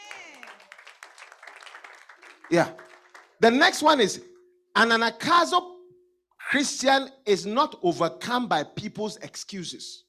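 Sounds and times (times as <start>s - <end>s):
crowd clapping: 0.0s - 3.9s
speech: 2.5s - 2.8s, 3.4s - 5.7s, 6.5s - 10.0s.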